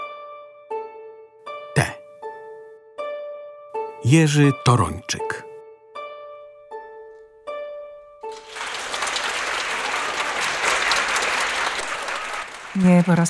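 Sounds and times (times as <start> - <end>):
speech: 1.8 - 2.0, 4.0 - 5.5, 12.8 - 13.2
theatre audience applauding after a performance: 8.3 - 13.2.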